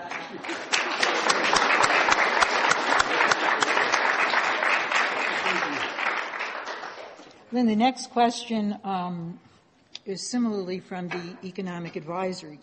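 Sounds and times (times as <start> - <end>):
audience applause: 0.0 - 7.2
speech: 7.5 - 9.5, 10.1 - 12.6.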